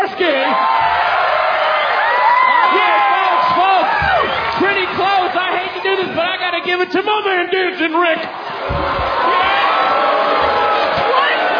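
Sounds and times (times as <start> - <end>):
audience applause: 0.5 - 6.6, 8.4 - 11.5
speech: 6.6 - 9.3.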